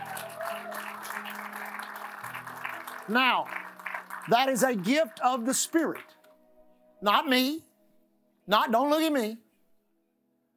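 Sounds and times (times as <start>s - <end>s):
audience applauding: 0.0s - 6.2s
speech: 3.1s - 3.6s, 4.2s - 6.2s, 7.0s - 7.7s, 8.5s - 9.4s.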